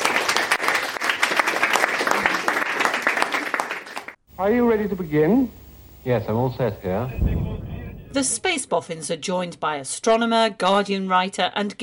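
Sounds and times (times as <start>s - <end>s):
applause: 0.0s - 4.2s
speech: 4.4s - 7.5s, 8.1s - 11.8s.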